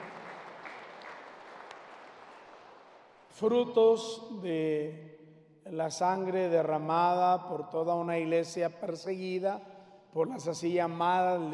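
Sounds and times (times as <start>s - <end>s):
audience applause honoring a martyred priest: 0.0s - 3.2s
speech: 3.4s - 11.5s.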